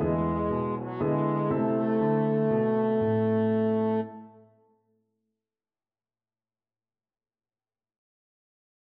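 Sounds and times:
french horn: 0.0 - 4.4.

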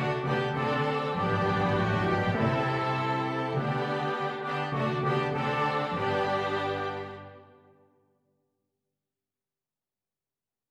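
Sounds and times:
flexible mixed ensemble of 4 players: 0.0 - 7.5.

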